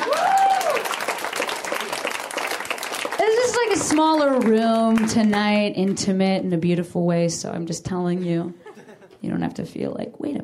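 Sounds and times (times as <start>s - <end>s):
audience clapping: 0.0s - 6.2s
speech: 3.8s - 8.6s, 9.2s - 10.4s.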